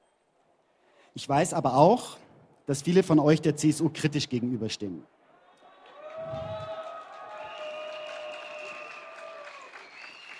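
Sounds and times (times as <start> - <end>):
speech: 1.2 - 5.2
applause: 5.7 - 10.3.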